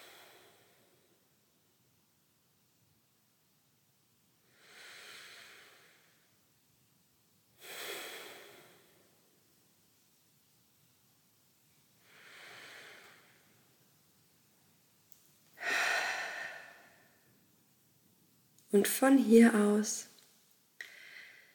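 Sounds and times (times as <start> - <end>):
slow deep breaths during a guided heart meditation: 0.0 - 1.2, 4.4 - 6.3, 7.6 - 9.4, 12.0 - 13.7, 15.6 - 17.3, 20.8 - 21.5
speech: 18.7 - 20.1.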